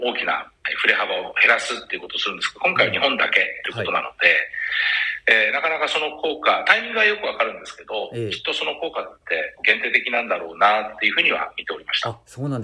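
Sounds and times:
speech: 0:00.0 - 0:12.6
distorted, clipping phone audio: 0:02.7 - 0:03.1, 0:03.7 - 0:04.0, 0:08.1 - 0:08.5.

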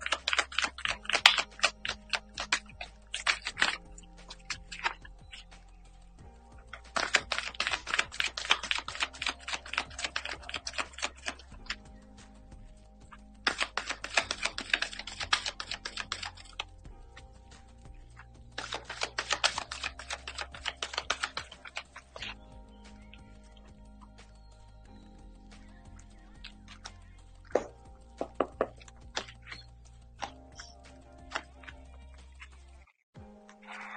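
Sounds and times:
tarot cards shuffled by hand: 0:00.0 - 0:05.6, 0:06.7 - 0:12.4, 0:13.1 - 0:16.8, 0:17.5 - 0:22.4, 0:26.5 - 0:32.6.

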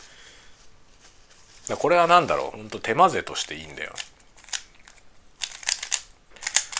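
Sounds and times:
speech: 0:01.7 - 0:04.1
Rubik's cube being twisted, plastic clicks: 0:03.4 - 0:06.7.

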